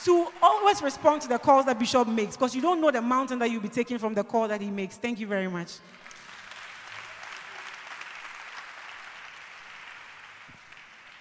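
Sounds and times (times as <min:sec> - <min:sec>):
speech: 0:00.0 - 0:06.0
audience applause: 0:05.9 - 0:11.1.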